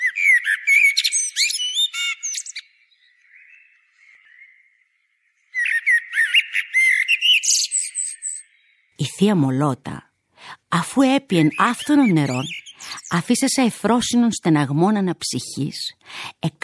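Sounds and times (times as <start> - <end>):
blackbirds singing: 0.0 - 9.0, 11.0 - 13.5
speech: 9.2 - 10.1, 10.9 - 16.6.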